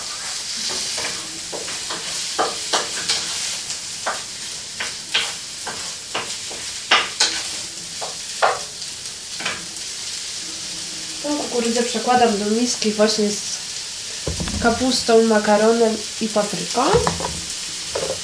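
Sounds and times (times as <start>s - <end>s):
vegetables sizzling in a hot pan: 0.0s - 18.2s
speech: 11.6s - 13.5s, 14.6s - 17.3s
utensil stirring vegetables in a pan: 14.3s - 15.3s, 16.8s - 18.2s.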